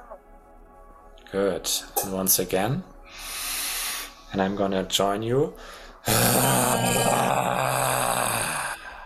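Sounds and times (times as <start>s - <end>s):
speech: 1.3s - 3.3s, 4.3s - 7.5s
deep breathing: 3.0s - 4.3s, 5.6s - 6.1s, 8.4s - 9.0s.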